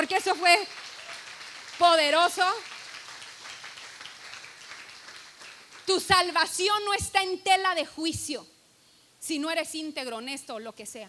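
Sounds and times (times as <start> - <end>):
speech: 0.0 - 0.9, 1.8 - 2.8, 5.9 - 8.5, 9.2 - 11.0
applause: 0.0 - 6.4.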